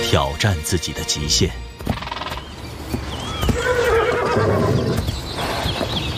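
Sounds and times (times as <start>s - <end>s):
speech: 0.1s - 2.1s
wild horses neighing in a large herd: 1.8s - 6.1s.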